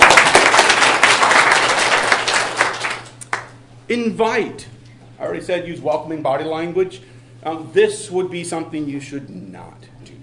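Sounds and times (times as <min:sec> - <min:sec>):
workshop audience clapping: 0:00.0 - 0:03.6
speech: 0:03.9 - 0:10.2.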